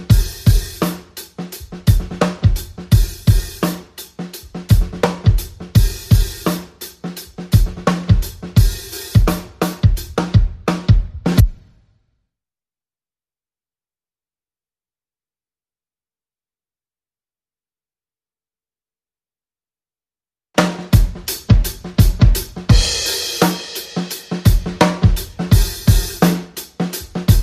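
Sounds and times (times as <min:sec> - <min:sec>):
drums: 0:00.0 - 0:11.7, 0:20.6 - 0:27.4.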